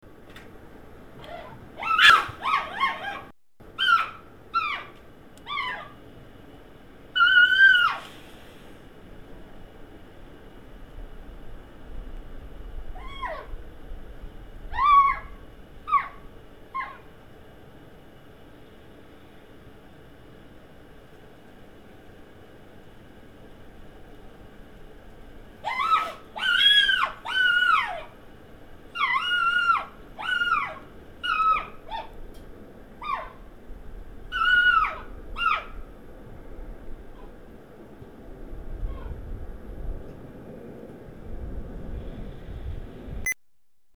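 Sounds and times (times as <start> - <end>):
red fox Vulpes vulpes: 1.2 - 6.0, 7.1 - 8.6, 12.9 - 13.6, 14.6 - 17.1, 25.6 - 28.2, 28.9 - 32.3, 33.0 - 33.5, 34.3 - 35.9.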